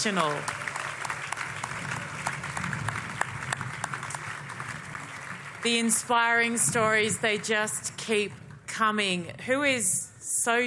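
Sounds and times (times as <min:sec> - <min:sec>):
speech: 0:00.0 - 0:00.6, 0:05.6 - 0:10.6
audience applause: 0:00.0 - 0:06.4.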